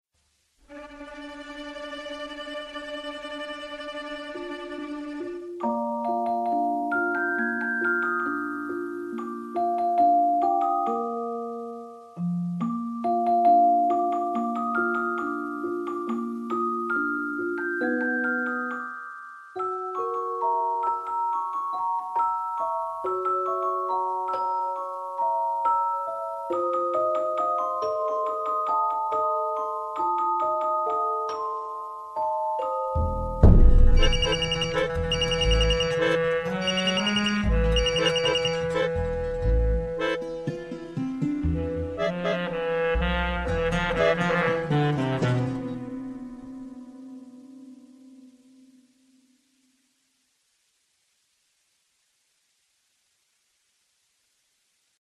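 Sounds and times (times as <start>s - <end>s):
melody: 4.0s - 48.0s
phone ring transition: 34.0s - 39.0s.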